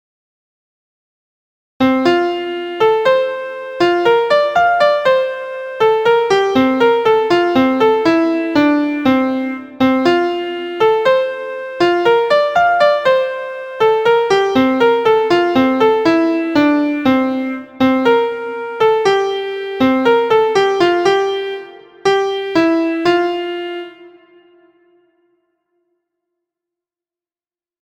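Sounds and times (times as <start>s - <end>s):
MIDI music: 1.8s - 25.0s.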